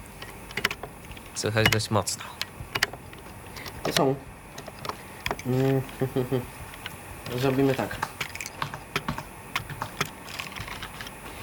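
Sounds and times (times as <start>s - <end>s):
speech: 1.4s - 2.4s, 3.9s - 4.3s, 5.4s - 6.6s, 7.3s - 8.1s
laughter: 5.6s - 6.6s
typing on a device keyboard: 7.7s - 11.2s.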